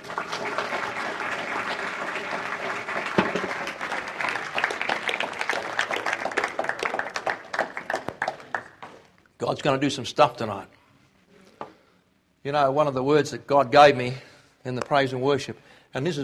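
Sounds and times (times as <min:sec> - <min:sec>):
audience clapping: 0:00.0 - 0:09.1
speech: 0:09.4 - 0:10.8, 0:12.4 - 0:16.2.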